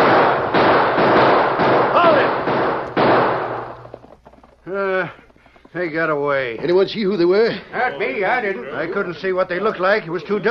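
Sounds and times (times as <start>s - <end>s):
volley of loud sharp gunshots: 0.0s - 4.6s
speech: 5.8s - 10.4s.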